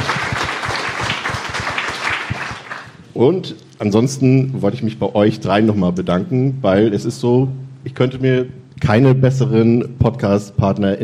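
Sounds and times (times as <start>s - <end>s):
audience applause: 0.0s - 3.0s
speech: 3.2s - 11.0s.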